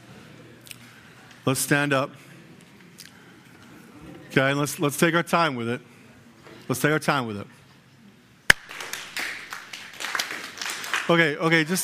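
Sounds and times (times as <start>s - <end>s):
speech: 1.5s - 2.3s, 4.4s - 5.9s, 6.7s - 7.6s, 11.1s - 11.8s
crowd clapping unevenly: 8.5s - 11.8s.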